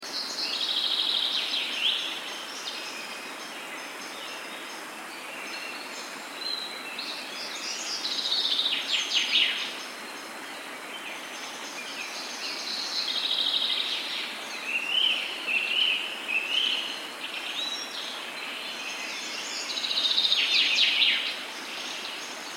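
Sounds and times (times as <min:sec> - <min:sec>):
nature sounds: 0:00.0 - 0:22.5.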